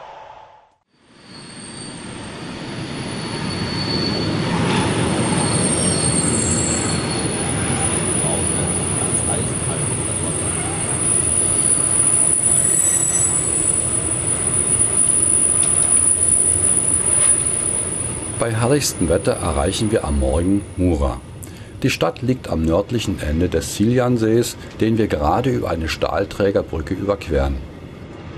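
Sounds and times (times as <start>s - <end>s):
train wheels squealing on rails at night: 1.0s - 20.8s
train rumble on rails: 1.9s - 28.3s
speech: 18.4s - 27.7s.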